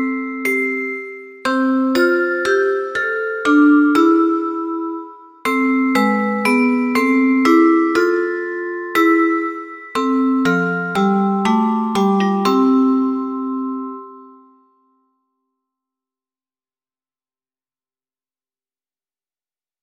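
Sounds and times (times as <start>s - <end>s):
vibraphone: 0.0s - 15.0s
celesta: 0.0s - 15.7s.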